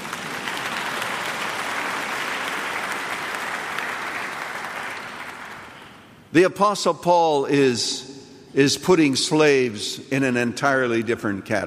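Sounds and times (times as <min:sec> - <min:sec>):
audience clapping: 0:00.0 - 0:06.1
speech: 0:06.3 - 0:11.6.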